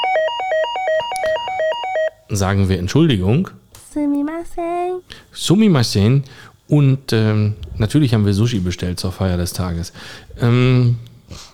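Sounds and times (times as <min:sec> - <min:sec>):
electronic doorbell chime: 0:00.0 - 0:02.2
speech: 0:02.3 - 0:11.5.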